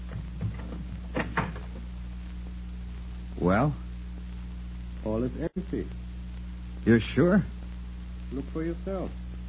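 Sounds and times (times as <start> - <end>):
door being opened: 0.0 - 1.8
speech: 3.4 - 3.9, 5.0 - 6.1, 6.8 - 7.6, 8.3 - 9.3.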